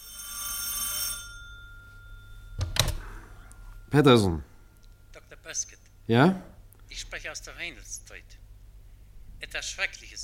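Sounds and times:
old telephone bell metallic trill: 0.0s - 4.0s
speech: 3.9s - 4.5s, 5.5s - 8.4s, 9.4s - 10.2s.

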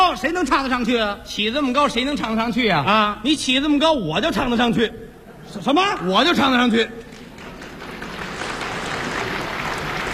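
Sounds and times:
speech: 0.1s - 7.0s
audience applause: 7.2s - 10.1s.

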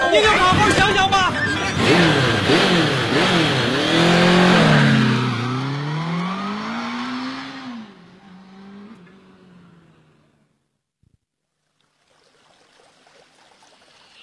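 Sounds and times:
speech: 0.1s - 0.8s
motorcycle engine revving: 0.4s - 10.6s.

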